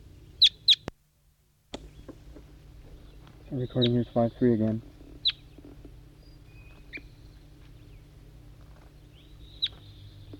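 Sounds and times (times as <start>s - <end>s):
steady low hum: 0.0s - 10.3s
bird chirping in response to distant wild bird: 0.3s - 0.9s, 3.0s - 4.4s, 5.2s - 8.1s, 8.8s - 10.3s
speech: 3.5s - 4.9s.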